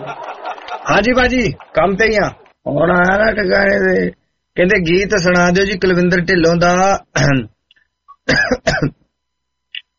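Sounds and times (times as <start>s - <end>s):
laughter: 0.0s - 1.8s
speech: 0.0s - 7.6s, 8.3s - 9.0s
person coughing: 8.2s - 9.0s.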